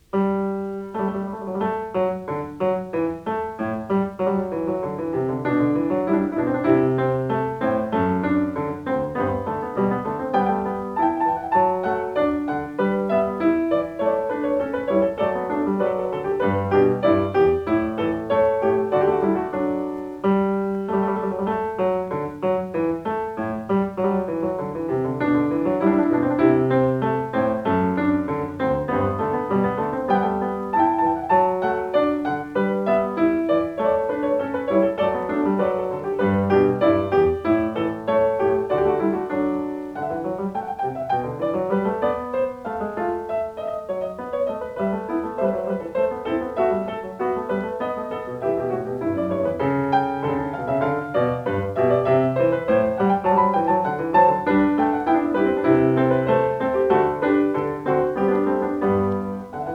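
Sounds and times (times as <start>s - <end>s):
keyboard variation piece: 0.0s - 59.7s.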